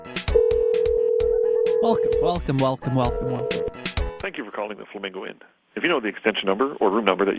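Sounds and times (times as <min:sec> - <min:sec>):
telephones ringing in a live radio studio: 0:00.4 - 0:02.4, 0:03.1 - 0:03.8
speech: 0:01.8 - 0:03.6, 0:04.2 - 0:07.3.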